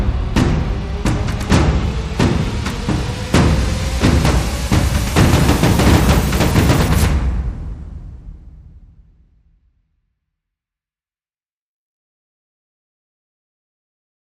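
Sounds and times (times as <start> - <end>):
heavy drums: 0.0 - 9.2.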